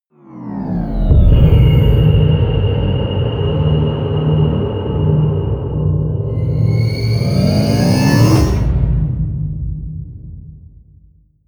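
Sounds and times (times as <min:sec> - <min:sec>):
promo synth pad: 0:00.4 - 0:08.9.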